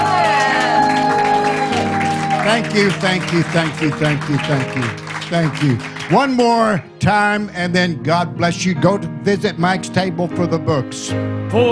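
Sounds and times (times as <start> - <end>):
shouts and whoops: 0.0 - 3.0
church audience applauding and cheering: 0.0 - 7.4
speech: 2.5 - 11.6.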